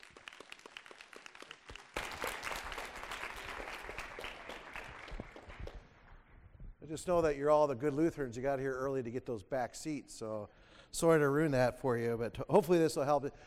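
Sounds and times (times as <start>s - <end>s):
audience applause: 0.0s - 5.8s
speech: 6.9s - 13.4s.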